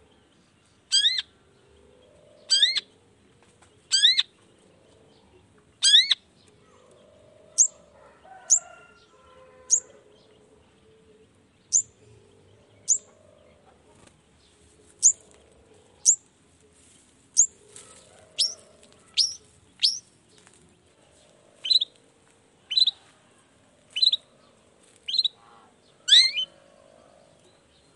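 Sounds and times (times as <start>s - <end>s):
faint hum: 0.0s - 27.9s
long-tailed shrike calling: 0.9s - 1.3s, 2.4s - 2.9s, 5.8s - 6.2s, 18.4s - 20.1s, 21.6s - 21.9s, 22.7s - 23.0s, 25.1s - 26.6s.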